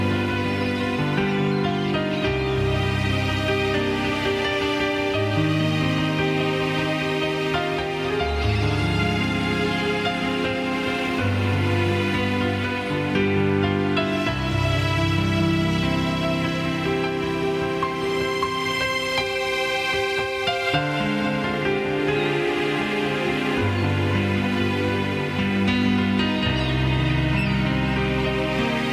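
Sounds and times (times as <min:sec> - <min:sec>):
nature sounds: 0:00.0 - 0:28.9
piano: 0:00.0 - 0:28.9.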